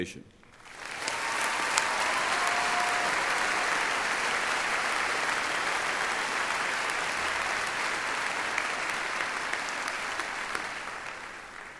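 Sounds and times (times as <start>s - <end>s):
audience applause: 0.5s - 11.7s.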